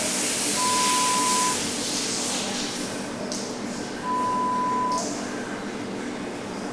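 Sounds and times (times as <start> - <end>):
gym changing room ambience: 0.2 - 6.6.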